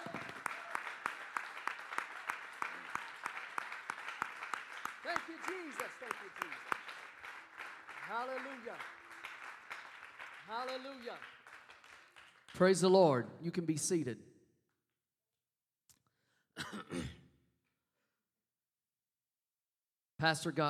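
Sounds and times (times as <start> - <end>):
audience clapping hands: 0.0 - 13.2
speech: 5.1 - 6.8, 8.1 - 9.0, 10.5 - 11.3, 12.5 - 14.3, 20.2 - 20.6.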